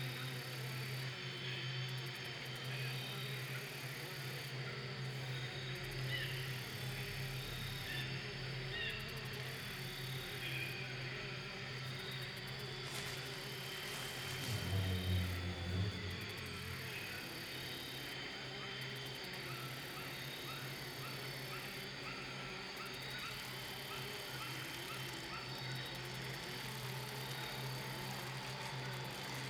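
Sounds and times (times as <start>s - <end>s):
swamp ambience: 0.5s - 29.4s.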